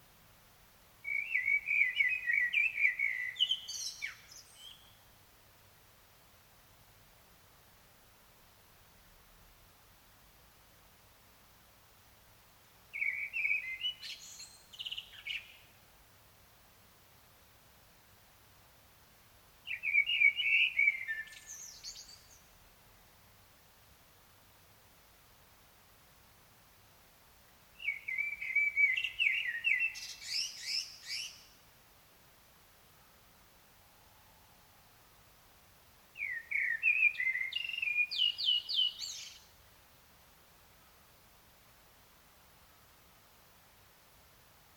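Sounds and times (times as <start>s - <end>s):
steady hiss: 0.0s - 2.4s, 3.1s - 44.7s
common blackbird singing: 1.0s - 5.0s, 13.0s - 15.6s, 19.7s - 22.4s, 27.8s - 31.5s, 36.2s - 39.5s.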